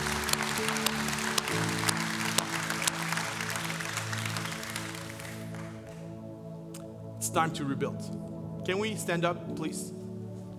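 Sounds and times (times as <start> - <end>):
audience clapping: 0.0 - 6.3
speech: 7.3 - 10.0.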